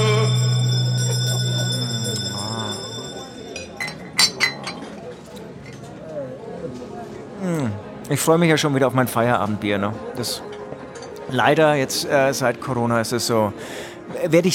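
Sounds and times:
bell ringing for the last round: 0:00.0 - 0:04.1
sharp bright clinks: 0:00.0 - 0:04.5
speech: 0:08.1 - 0:10.5, 0:11.3 - 0:14.5.

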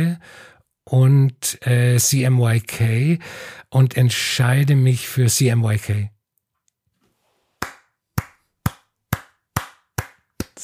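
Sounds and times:
speech: 0:00.0 - 0:06.2
slow hand clapping: 0:07.6 - 0:10.6.

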